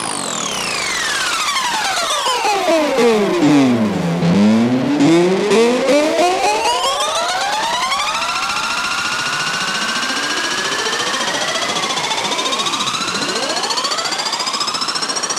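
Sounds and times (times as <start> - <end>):
crow riser effect: 0.5 - 14.3.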